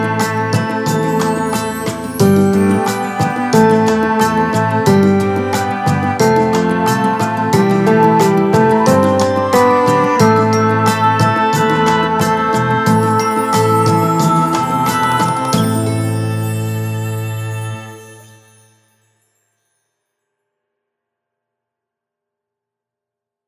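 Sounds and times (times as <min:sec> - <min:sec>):
orchestra playing: 0:00.0 - 0:18.0
piano: 0:00.0 - 0:18.8.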